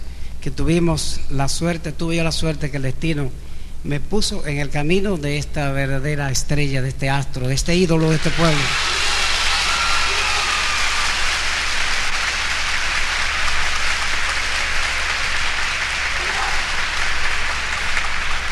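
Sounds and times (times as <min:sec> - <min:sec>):
speech: 0:00.4 - 0:08.9
warm audience applause: 0:08.0 - 0:18.4.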